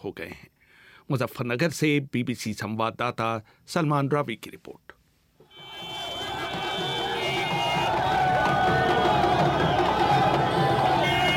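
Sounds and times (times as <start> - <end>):
speech: 0.0 - 0.5, 1.1 - 5.0
crowd roaring and shouting at an election campaign rally: 5.6 - 11.3.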